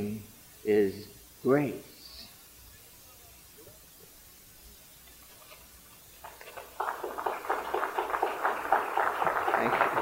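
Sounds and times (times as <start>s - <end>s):
speech: 0.0s - 1.9s
audience applause after a poem: 6.2s - 10.0s.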